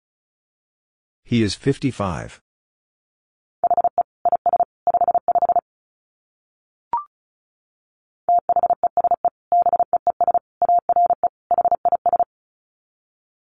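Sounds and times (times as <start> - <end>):
speech: 1.3 - 2.4
Morse code tones at 35 wpm: 3.6 - 5.6, 8.3 - 12.3.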